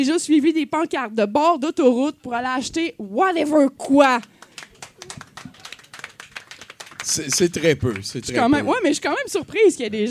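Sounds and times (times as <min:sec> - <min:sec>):
speech: 0:00.0 - 0:04.4, 0:07.1 - 0:10.0
sparse scattered applause from a small part of an audience: 0:04.2 - 0:08.5.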